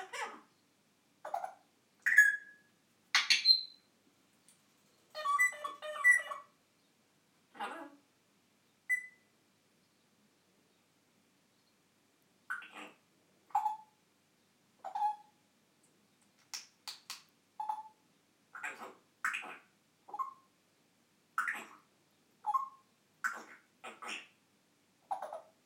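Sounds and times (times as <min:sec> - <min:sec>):
African grey parrot talking: 0:00.0 - 0:00.5, 0:05.1 - 0:06.5, 0:07.5 - 0:08.0, 0:12.5 - 0:13.9, 0:18.5 - 0:20.4, 0:21.4 - 0:24.4, 0:25.1 - 0:25.5
African grey parrot imitating birds: 0:01.2 - 0:02.5, 0:03.2 - 0:03.7, 0:05.1 - 0:06.5, 0:08.9 - 0:09.2, 0:12.5 - 0:13.9, 0:14.8 - 0:15.3, 0:17.6 - 0:20.5, 0:21.4 - 0:24.4, 0:25.1 - 0:25.6.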